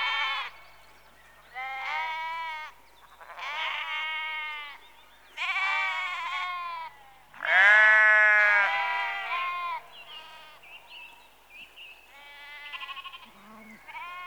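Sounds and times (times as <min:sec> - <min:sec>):
sheep bleating in a rural setting: 0:00.0 - 0:00.5, 0:01.6 - 0:02.7, 0:03.3 - 0:04.8, 0:05.4 - 0:10.6, 0:12.2 - 0:14.2.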